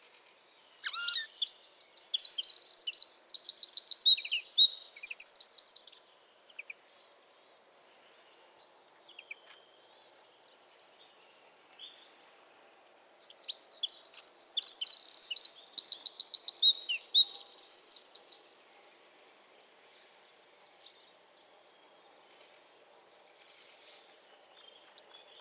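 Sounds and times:
Eurasian wren song: 0.8s - 6.2s, 13.2s - 18.7s.

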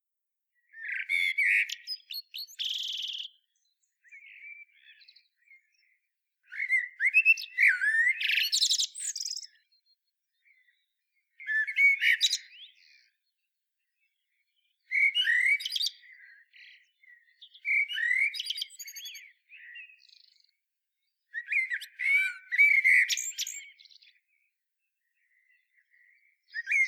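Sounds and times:
Eurasian blackbird singing: 0.6s - 13.3s, 13.9s - 24.4s, 25.0s - 26.8s.

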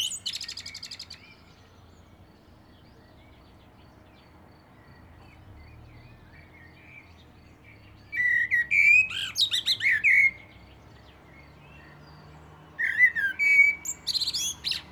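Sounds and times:
common blackbird singing: 0.0s - 14.9s.

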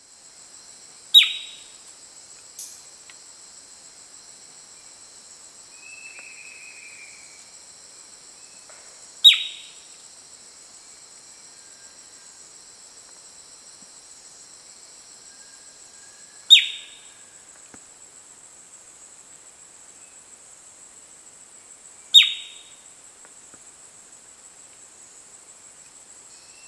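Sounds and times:
steady high hiss: 0.0s - 26.6s
bird chirps: 1.2s - 1.6s, 9.2s - 9.8s, 22.2s - 22.6s.

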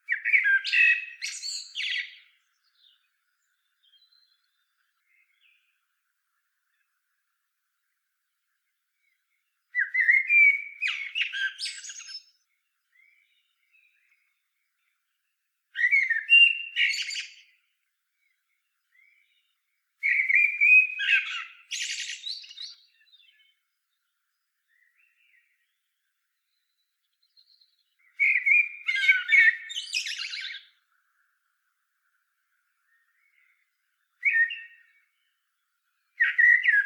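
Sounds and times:
Common blackbird song: 0.1s - 5.7s, 9.0s - 14.4s, 15.8s - 17.6s, 18.9s - 23.7s, 26.4s - 30.8s, 32.9s - 35.4s, 36.0s - 36.8s.

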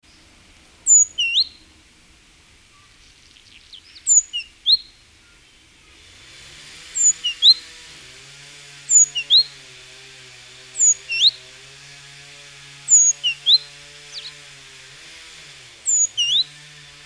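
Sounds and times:
great tit whistled song: 0.8s - 1.6s, 2.8s - 6.0s, 6.9s - 7.8s, 8.9s - 9.6s, 10.7s - 11.5s, 12.9s - 14.5s, 15.9s - 16.7s.

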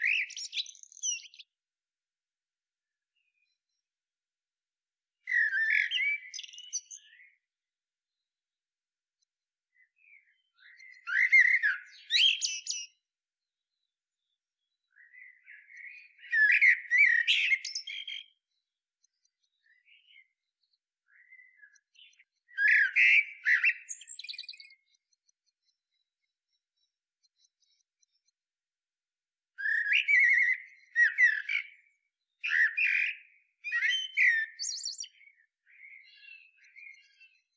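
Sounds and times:
common blackbird singing: 0.0s - 1.5s, 5.3s - 7.4s, 9.7s - 13.0s, 13.7s - 18.4s, 19.1s - 26.6s, 29.6s - 37.5s.

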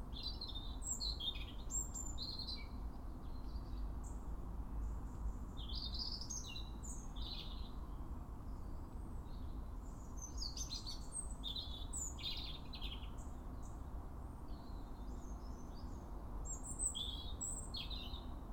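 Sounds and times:
European robin song: 0.1s - 4.2s, 4.8s - 8.7s, 9.3s - 13.8s, 14.5s - 18.4s.

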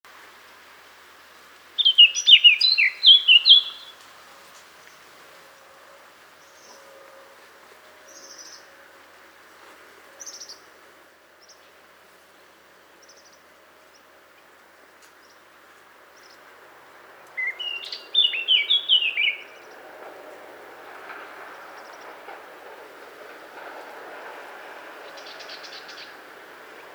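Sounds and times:
Eurasian blackcap Sylvia atricapilla song with fluty whistled slurs: 1.8s - 4.0s, 17.2s - 19.8s, 25.0s - 26.9s.

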